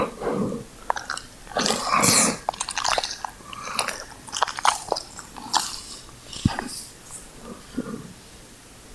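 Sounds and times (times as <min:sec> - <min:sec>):
dog sneezing and snorting: 0:00.1 - 0:08.0.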